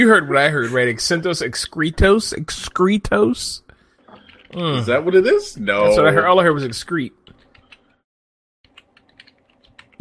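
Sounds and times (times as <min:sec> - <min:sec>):
speech: 0:00.0 - 0:03.6, 0:04.5 - 0:07.2
typing a search into Google on a computer keyboard: 0:06.7 - 0:08.0, 0:08.6 - 0:09.9.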